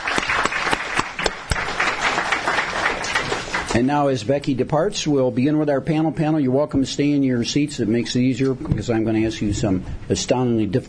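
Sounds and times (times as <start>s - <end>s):
audience applauding a speaker before a panel discussion: 0.0s - 3.8s
speech: 3.8s - 10.8s.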